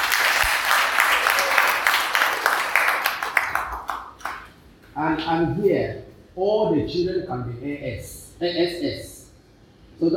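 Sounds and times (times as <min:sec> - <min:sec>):
audience clapping: 0:00.0 - 0:04.6
speech: 0:05.2 - 0:09.1, 0:10.0 - 0:10.1.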